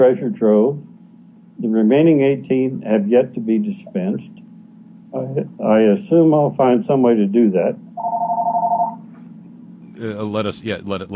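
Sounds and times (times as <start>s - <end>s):
speech: 0.0s - 0.9s, 1.6s - 4.4s, 5.1s - 8.1s, 10.0s - 11.1s
faint low hum: 0.0s - 11.1s
telephone ringing: 8.0s - 9.1s.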